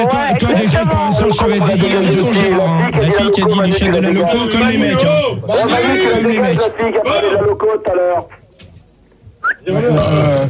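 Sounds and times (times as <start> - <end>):
speech: 0.0 - 8.4, 9.6 - 10.4
loud rough burp attributed to a pig: 9.8 - 10.4.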